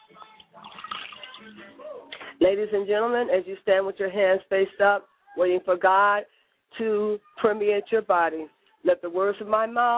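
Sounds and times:
water poured from a glass as libation: 0:00.6 - 0:01.7
speech: 0:01.4 - 0:09.9.

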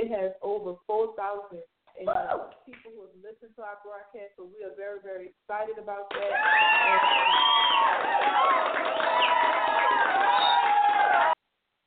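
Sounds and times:
speech: 0:00.1 - 0:09.4
audience clapping: 0:06.1 - 0:11.4.

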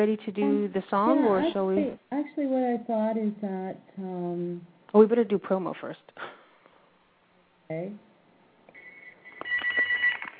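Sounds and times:
speech: 0:00.0 - 0:06.4, 0:07.7 - 0:08.1
phone ringing with electronic tone: 0:08.8 - 0:10.3.

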